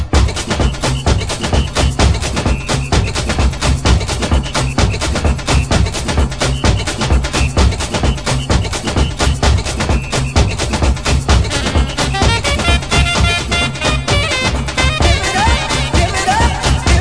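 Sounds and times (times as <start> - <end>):
saxophone: 0.2 - 16.9.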